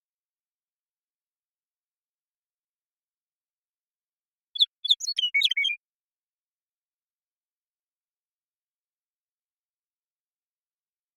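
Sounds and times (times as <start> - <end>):
western meadowlark song: 4.4 - 5.9.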